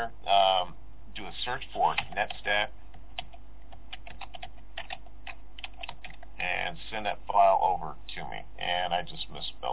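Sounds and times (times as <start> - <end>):
speech: 0.0 - 2.8, 6.4 - 9.7
computer keyboard key clicks typing a command at an MS-DOS prompt: 3.2 - 6.3.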